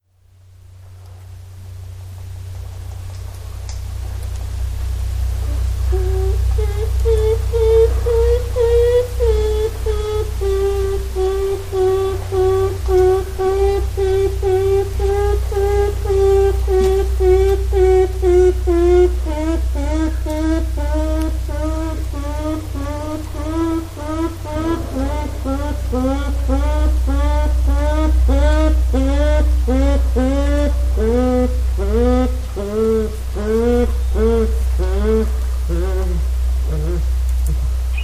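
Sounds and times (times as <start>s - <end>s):
curious natural humming sound: 0.0s - 38.0s.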